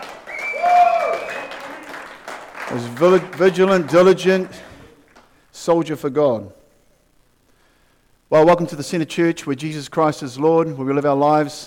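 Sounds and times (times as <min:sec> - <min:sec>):
audience clapping: 0:00.0 - 0:05.4
speech: 0:02.7 - 0:04.7, 0:05.6 - 0:06.6, 0:08.3 - 0:11.6.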